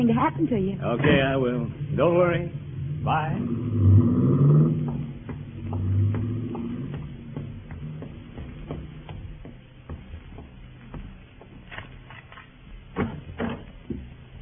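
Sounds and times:
speech: 0.0 - 5.0
car driving off: 0.8 - 10.8.

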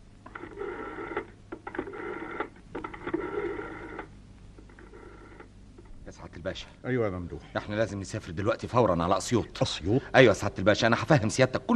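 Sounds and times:
faint steady hum: 0.0 - 11.7
telephone ringing in buzzy trilling bursts: 0.2 - 5.6
speech: 6.4 - 11.7.

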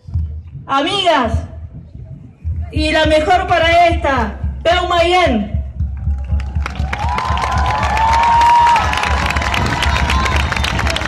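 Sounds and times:
speech: 0.7 - 1.5, 2.7 - 5.5
crowd applause and cheering: 6.0 - 11.0.

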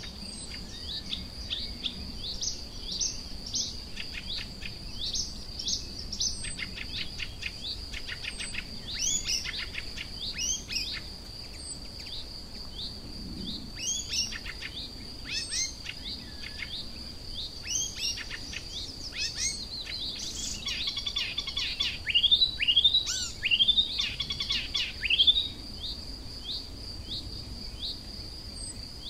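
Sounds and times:
icterine warbler singing: 0.0 - 29.0.

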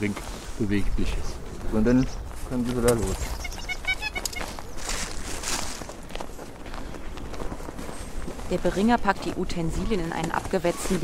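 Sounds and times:
speech: 0.0 - 3.4, 8.5 - 11.0
duck flapping its wings: 3.4 - 5.2.

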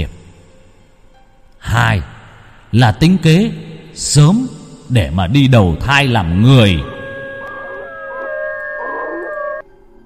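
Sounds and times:
speech: 2.7 - 6.9
pack of dogs howling together: 6.6 - 9.6.

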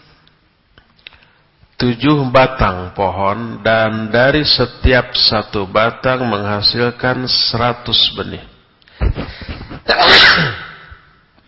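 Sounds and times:
speech: 1.8 - 8.5
person sneezing: 9.0 - 11.1.

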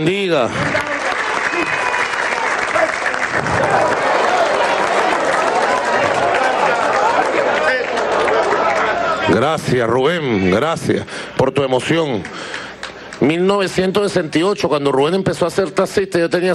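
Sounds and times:
speech: 0.0 - 1.0, 9.3 - 12.6, 13.2 - 16.5
crowd applause at a cultural news event honoring a taxi driver: 0.0 - 9.8
faint cheering: 0.6 - 9.5.

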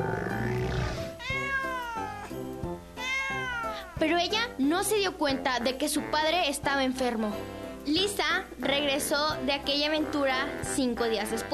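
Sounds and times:
cat meowing: 0.0 - 2.4, 3.0 - 4.0
speech: 4.0 - 11.5.

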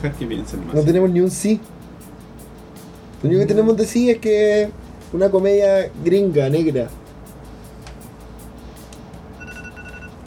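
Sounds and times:
speech: 0.0 - 1.8, 3.2 - 7.0
electronic timer alarm beeping: 9.4 - 10.2.

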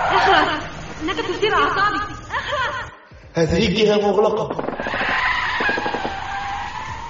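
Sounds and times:
laughter: 0.1 - 3.1
speech: 1.1 - 2.1, 3.3 - 5.1
car tires skidding during a chase: 4.7 - 7.0.

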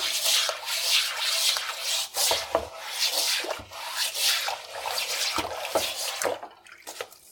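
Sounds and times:
stiff brush scrubbing a wooden cutting board while washing dishes: 0.0 - 6.4
faint watery drips: 5.3 - 7.3.

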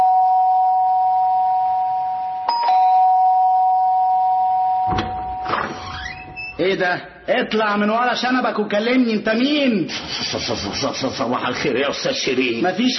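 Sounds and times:
electric doorbell ringing: 0.0 - 5.5
speech: 6.6 - 12.9.

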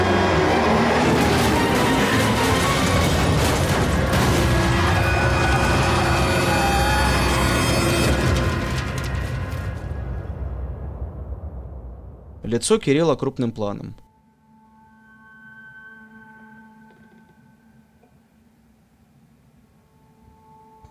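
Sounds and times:
taxi crashing into a truck and exploding at an intersection: 0.0 - 12.4
speech: 12.5 - 14.1.

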